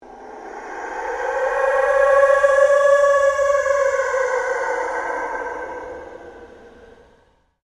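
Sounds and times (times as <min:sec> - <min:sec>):
long pulsing sweep: 0:00.0 - 0:07.3.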